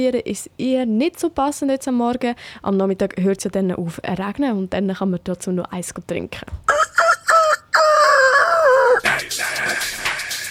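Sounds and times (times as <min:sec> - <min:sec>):
speech: 0:00.0 - 0:07.2
rooster crowing alarm clock sound: 0:06.7 - 0:09.0.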